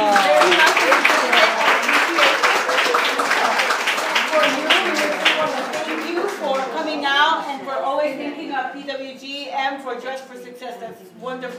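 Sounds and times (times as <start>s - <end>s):
audience clapping at a presentation during a group meeting: 0.0s - 7.4s
people talking: 0.0s - 11.5s.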